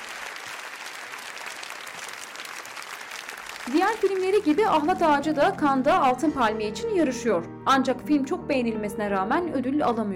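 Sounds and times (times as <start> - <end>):
standing ovation applause at Cannes Film Festival: 0.0 - 5.1
speech: 3.7 - 10.1.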